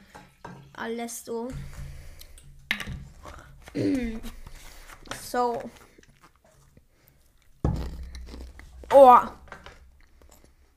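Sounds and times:
speech: 0:00.8 - 0:01.8, 0:03.8 - 0:04.4, 0:05.3 - 0:05.8, 0:09.0 - 0:09.4
eating crunchy barbecue corn snacks: 0:05.6 - 0:10.7.

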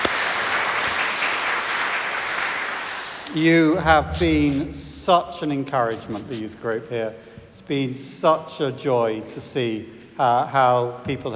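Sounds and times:
audience applause: 0:00.0 - 0:03.2
speech: 0:03.4 - 0:11.3.

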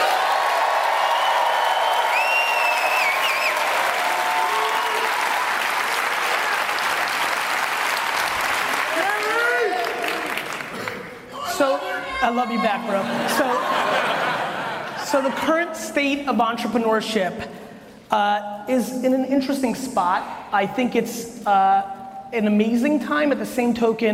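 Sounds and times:
audience applause for volunteers: 0:00.0 - 0:11.2
speech: 0:12.2 - 0:14.4, 0:15.1 - 0:24.1
laughter: 0:12.7 - 0:15.4.

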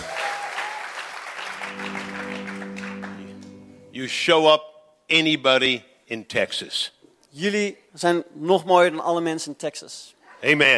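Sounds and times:
audience applause: 0:00.0 - 0:03.5
speech: 0:04.0 - 0:10.7.

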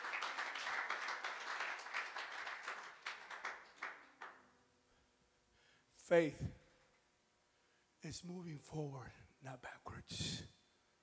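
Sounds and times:
audience applauding: 0:00.0 - 0:04.4
speech: 0:06.1 - 0:06.6, 0:08.0 - 0:10.6.

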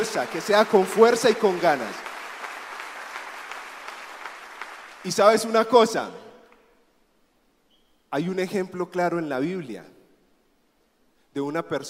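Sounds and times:
speech: 0:00.0 - 0:02.1, 0:05.0 - 0:06.2, 0:08.1 - 0:09.9, 0:11.4 - 0:11.8
audience applause: 0:00.0 - 0:05.2.

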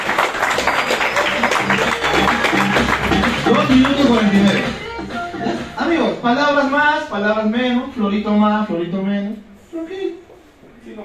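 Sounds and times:
audience applause: 0:00.0 - 0:04.7
speech: 0:06.2 - 0:10.2.

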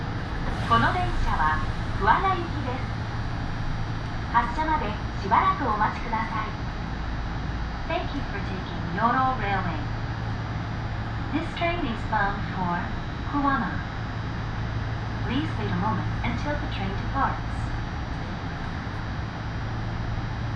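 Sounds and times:
Yoro Railway train rumble and hum: 0:00.0 - 0:20.5.

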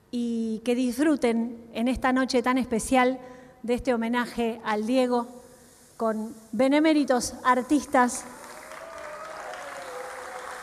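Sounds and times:
speech: 0:00.1 - 0:05.4, 0:06.0 - 0:08.4
audience applause: 0:08.3 - 0:10.6.

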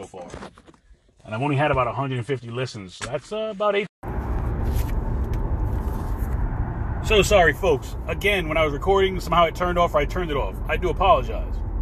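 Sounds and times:
speech: 0:01.3 - 0:03.9, 0:07.1 - 0:11.7
car road noise while driving: 0:04.0 - 0:11.8.

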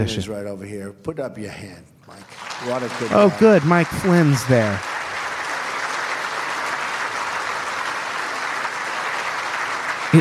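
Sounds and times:
speech: 0:00.0 - 0:04.9
audience clapping in recorded clip: 0:02.1 - 0:10.1.

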